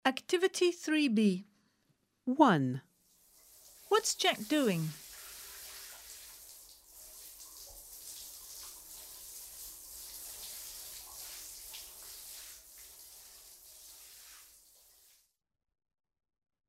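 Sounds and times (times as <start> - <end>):
speech: 0.0 - 1.5, 2.3 - 2.9, 3.9 - 5.0
shower running: 3.0 - 15.3.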